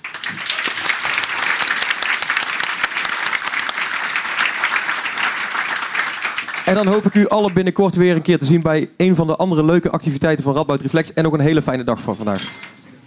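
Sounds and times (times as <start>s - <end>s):
audience applause: 0.0s - 7.8s
speech: 6.7s - 12.7s.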